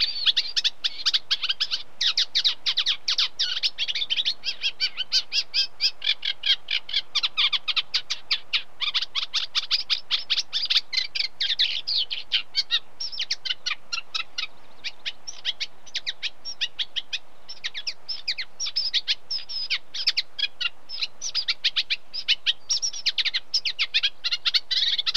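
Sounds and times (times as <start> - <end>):
song of unmated male Reed Warbler: 0.0 - 25.1.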